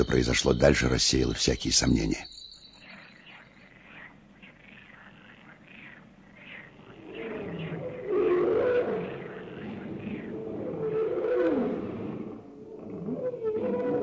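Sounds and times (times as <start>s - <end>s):
speech: 0.0s - 2.3s
lion roaring: 3.9s - 14.0s.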